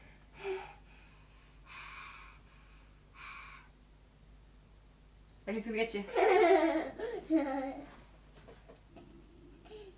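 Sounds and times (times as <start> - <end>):
deep breaths drawn during a medical chest examination: 0.0 - 3.8
speech: 5.5 - 6.3, 7.3 - 7.8.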